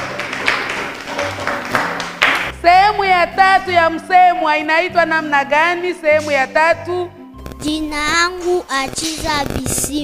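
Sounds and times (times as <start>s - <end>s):
classmates clapping for a pupil's answer in class: 0.0s - 2.6s
speech: 2.6s - 10.0s.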